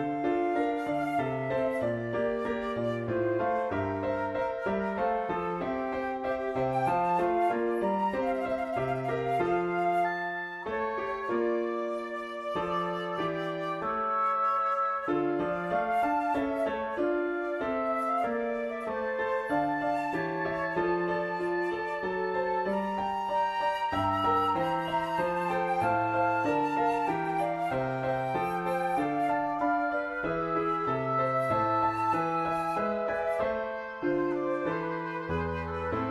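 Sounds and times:
flute: 0.0s - 36.0s
oboe: 0.0s - 36.0s
piano: 0.0s - 36.0s.

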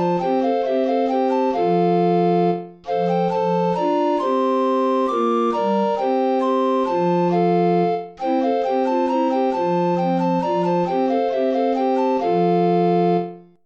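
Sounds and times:
volta play-along music without alto recorder: 0.0s - 13.6s.

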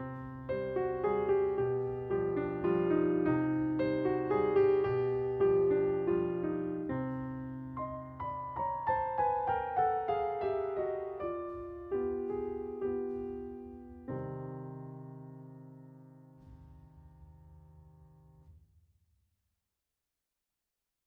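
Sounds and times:
small waltz: 0.3s - 14.1s.

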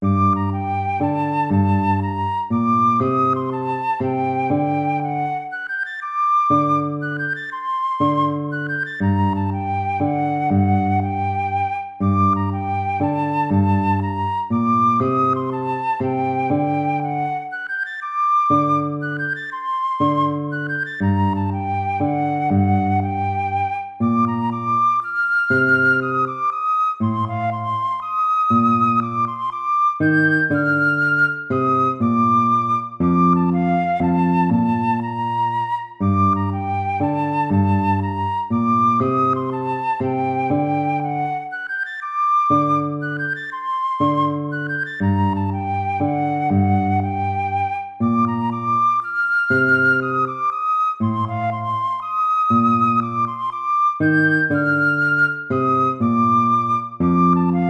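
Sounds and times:
baroque minuet in minor key: 0.0s - 57.6s.

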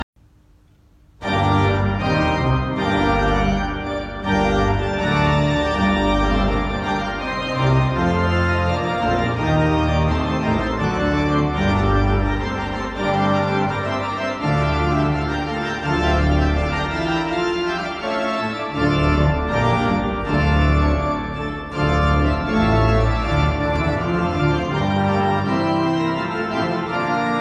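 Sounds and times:
organ playing a sinfonia transcription: 1.2s - 27.3s.

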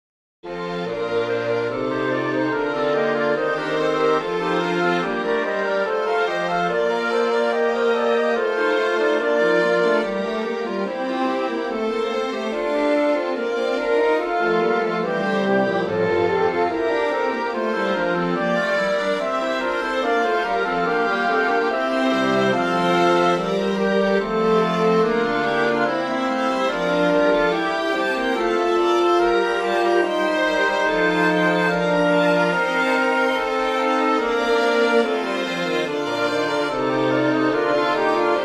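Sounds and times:
wind and string ensemble: 0.7s - 38.4s.

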